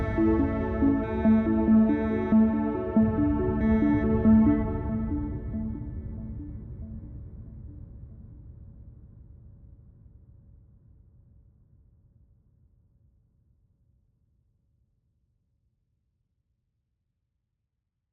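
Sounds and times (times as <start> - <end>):
arpeggio: 0.0 - 6.6.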